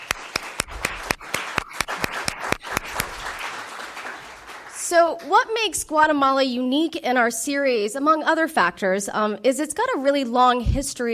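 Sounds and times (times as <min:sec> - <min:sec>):
audience applause: 0:00.0 - 0:04.9
speech: 0:04.9 - 0:11.1.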